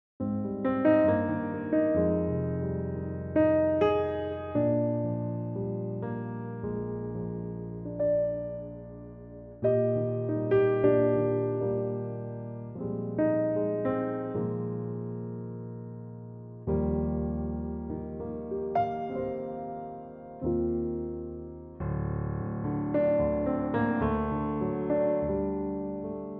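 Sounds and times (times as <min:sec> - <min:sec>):
electric piano track: 0:00.2 - 0:26.3.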